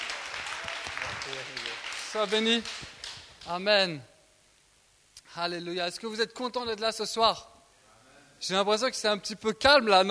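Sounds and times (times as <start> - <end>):
audience applause: 0.0 - 3.5
speech: 1.2 - 4.1, 5.3 - 7.5, 8.4 - 10.0.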